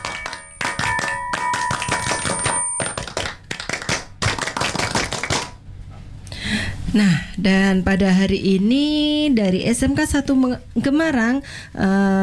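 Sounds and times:
group doing scout rhythmic clap: 0.0s - 5.6s
speech: 6.9s - 12.2s.

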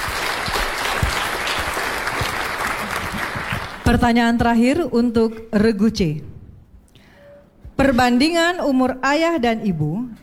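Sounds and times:
applause: 0.0s - 3.9s
speech: 3.9s - 6.3s, 7.8s - 10.2s.

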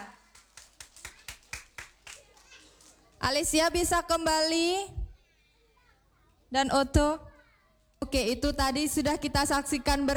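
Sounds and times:
audience applause for performers: 0.0s - 3.1s
speech: 3.2s - 5.0s, 6.5s - 7.3s, 8.1s - 10.1s.

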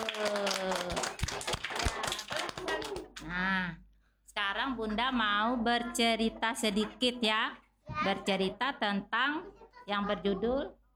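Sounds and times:
children clapping hands: 0.0s - 3.3s
speech: 4.8s - 10.8s.

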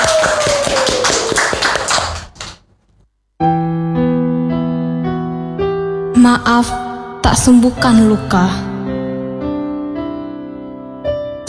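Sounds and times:
audience clapping: 0.0s - 2.9s
sustained steady keyboard chords: 3.4s - 11.4s
speech: 6.3s - 8.7s.

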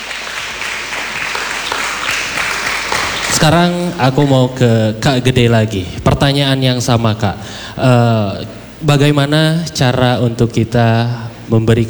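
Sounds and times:
audience applause: 0.0s - 4.3s
speech: 3.4s - 11.8s.

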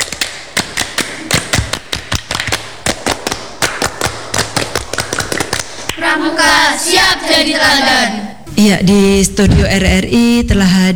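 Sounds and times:
children doing rhythmic scout clapping: 0.0s - 8.4s
speech: 6.0s - 10.9s.

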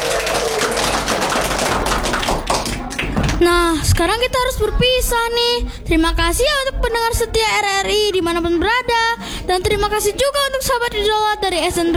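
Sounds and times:
audience applause: 0.0s - 3.6s
speech: 3.4s - 11.9s.

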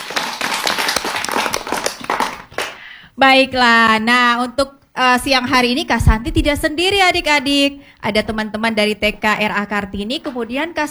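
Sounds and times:
children clapping hands: 0.0s - 2.9s
speech: 3.2s - 10.8s.

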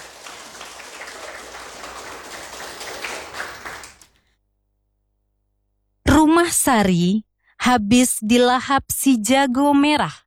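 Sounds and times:
applause for Team A during a school quiz: 0.0s - 4.2s
speech: 6.4s - 10.2s.

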